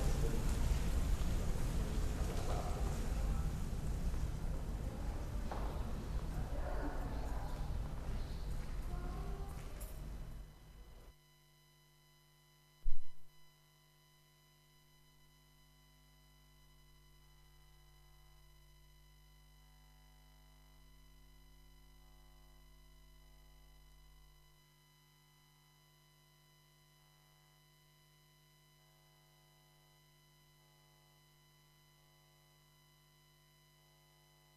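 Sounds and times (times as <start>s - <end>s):
Berlin airport field recording ambience: 0.0s - 10.4s.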